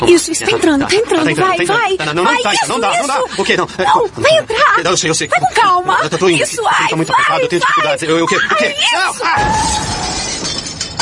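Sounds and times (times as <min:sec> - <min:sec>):
speech: 0:00.0 - 0:10.2
car crashing while parking: 0:09.4 - 0:11.0
glass shattering: 0:09.4 - 0:11.0.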